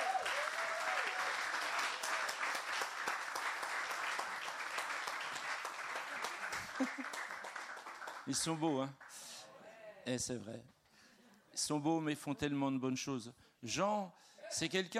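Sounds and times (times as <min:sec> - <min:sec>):
audience applauding: 0:00.0 - 0:09.3
speech: 0:06.8 - 0:07.2, 0:08.2 - 0:09.0, 0:10.1 - 0:10.8, 0:11.6 - 0:14.9.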